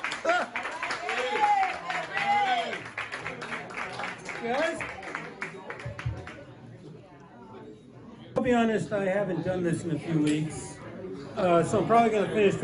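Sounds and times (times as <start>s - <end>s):
audience clapping for comic: 0.0s - 6.5s
speech: 4.4s - 5.0s, 8.5s - 10.7s, 11.4s - 12.6s.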